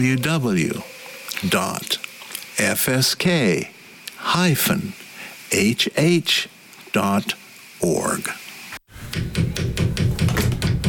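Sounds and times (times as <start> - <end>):
speech: 0.0 - 2.0, 2.6 - 8.4
knocking on a device that doesn't work: 9.1 - 10.8.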